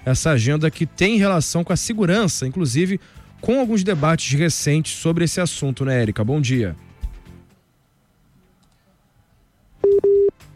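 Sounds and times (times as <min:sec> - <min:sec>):
speech: 0:00.0 - 0:06.9
WhatsApp call tone electronic beeps: 0:09.8 - 0:10.4.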